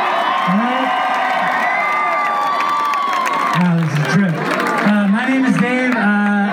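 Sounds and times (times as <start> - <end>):
audience cheering and whooping: 0.0 - 5.0
audience clapping: 0.0 - 6.4.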